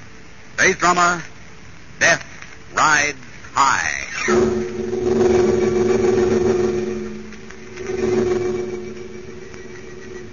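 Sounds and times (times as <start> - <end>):
speech: 0.6 - 1.3, 2.0 - 4.7
bomber aircraft engine roaring: 4.1 - 10.3.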